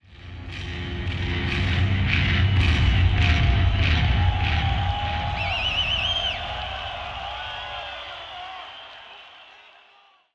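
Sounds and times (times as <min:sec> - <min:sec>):
bass solo: 0:00.1 - 0:06.2.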